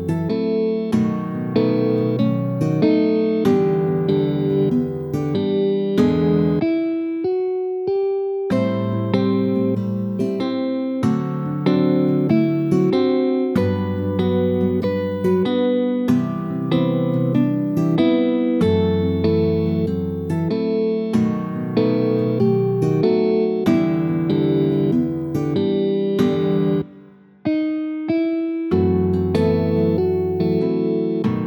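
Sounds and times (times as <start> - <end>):
swing guitar in G major: 0.0 - 7.5, 8.5 - 26.9, 27.5 - 31.4.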